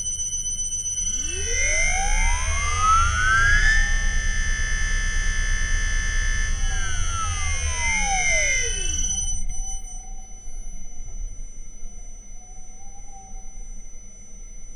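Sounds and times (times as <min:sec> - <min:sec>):
Liebherr motor accelerating from zero to 2600 rpm with field weakening: 0:01.1 - 0:09.3.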